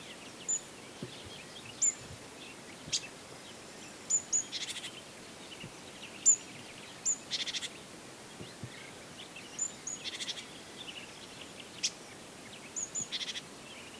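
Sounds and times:
soft background hiss: 0.0 - 13.9
great tit calling with piping notes and churring rattles: 0.1 - 3.2, 3.8 - 11.0, 12.7 - 13.5.

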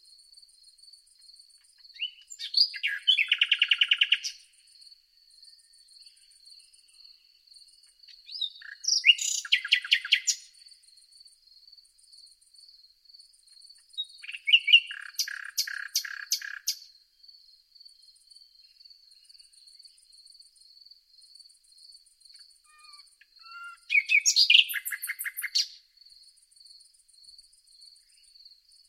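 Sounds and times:
common nightingale singing: 1.3 - 11.0, 13.6 - 20.3, 22.3 - 25.9.

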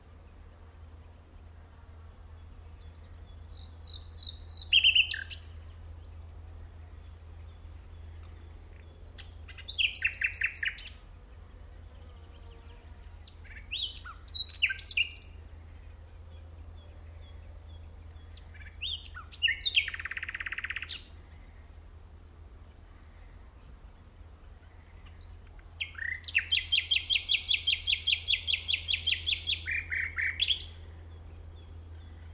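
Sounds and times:
common nightingale song: 2.4 - 6.3, 7.0 - 11.0, 11.8 - 15.4, 16.1 - 21.2, 23.8 - 32.3.

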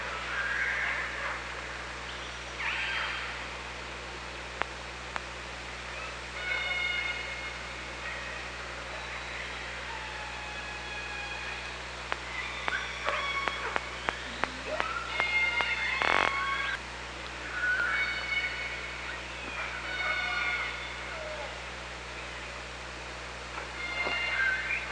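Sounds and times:
constant hiss and hum: 0.0 - 24.9
killer whale calls: 6.4 - 8.3, 8.9 - 16.8, 17.5 - 21.6, 23.8 - 24.9.

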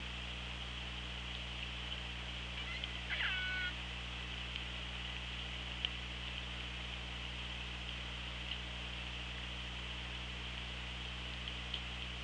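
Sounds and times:
low hum: 0.0 - 12.2
orca pulsed call: 2.6 - 3.8.

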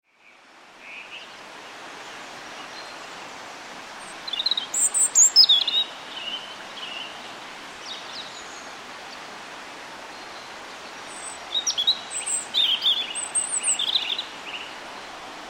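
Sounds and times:
European robin Erithacus rubecula giving high sharp twittering notes: 4.1 - 6.4, 11.1 - 14.7.

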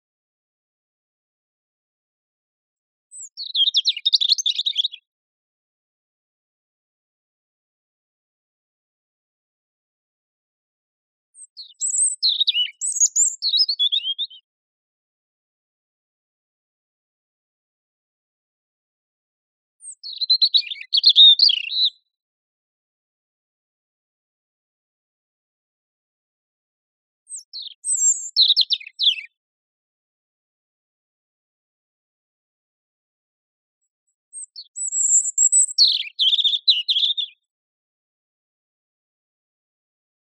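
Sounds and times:
European robin singing: 3.1 - 5.1, 11.4 - 14.4, 19.8 - 22.1, 27.3 - 29.4, 34.3 - 37.5.

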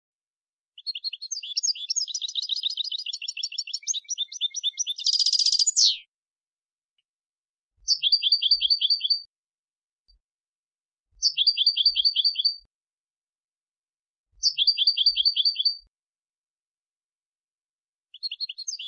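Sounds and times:
European goldfinch Carduelis carduelis singing with twittering bursts and trills: 0.8 - 6.1, 7.8 - 9.3, 11.2 - 12.6, 14.4 - 15.8, 18.1 - 18.8.

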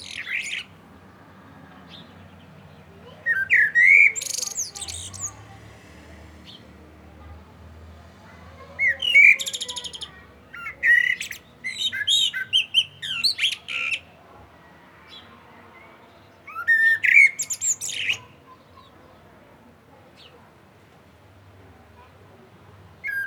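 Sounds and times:
Common blackbird song: 0.0 - 5.5, 8.8 - 14.2, 16.0 - 19.2, 23.0 - 23.2.

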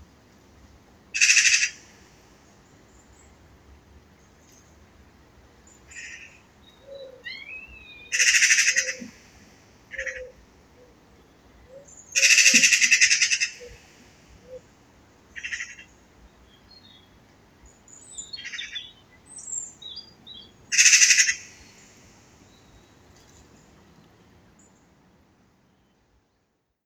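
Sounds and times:
Eurasian magpie Pica pica giving harsh rattling chatter calls: 8.1 - 9.1, 12.2 - 13.8, 20.7 - 21.6.

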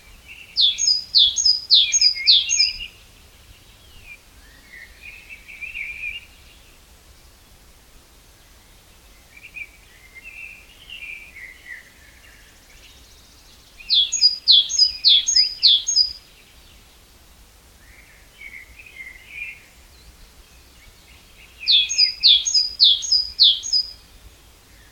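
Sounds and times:
great tit singing: 0.2 - 6.6, 12.7 - 16.7, 18.3 - 24.3.

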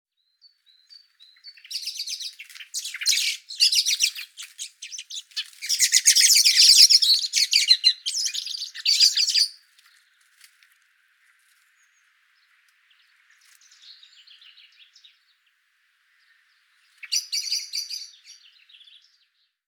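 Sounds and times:
common blackbird harsh chattering calls: 1.6 - 9.6.

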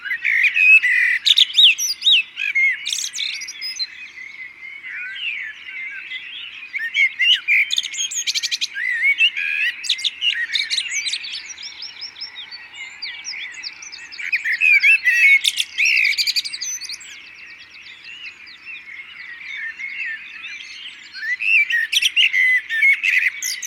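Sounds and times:
Common blackbird Turdus merula sharp chinking calls: 0.0 - 23.6.

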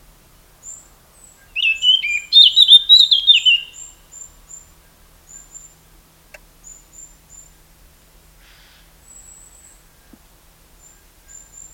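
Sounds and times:
Eurasian blackcap whistled warbling: 1.6 - 3.8.

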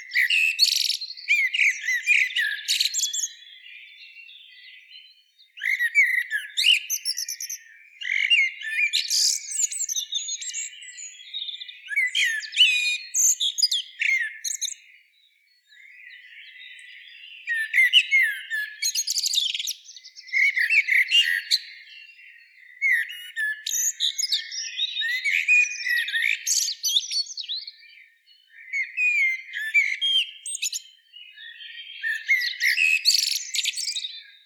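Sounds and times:
common blackbird twittering song: 0.0 - 34.4.

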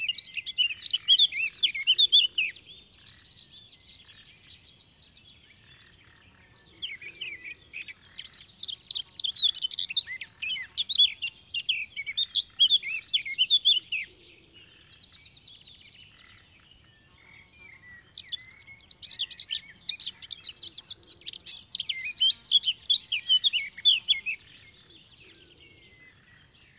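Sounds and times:
Eurasian blackcap warbling song: 0.0 - 2.6, 6.7 - 14.1, 17.6 - 25.1.

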